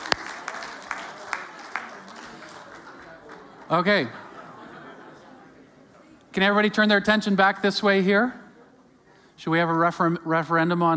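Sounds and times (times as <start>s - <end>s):
scattered audience applause from a small group: 0.0s - 4.2s
laughter: 2.8s - 5.9s
speech: 3.7s - 4.2s, 6.4s - 8.4s, 9.4s - 10.9s.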